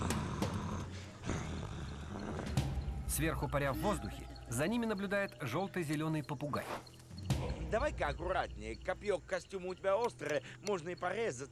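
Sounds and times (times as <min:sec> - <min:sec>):
animal growling with bared teeth: 0:00.0 - 0:03.2
speech: 0:03.2 - 0:06.9, 0:07.7 - 0:11.5.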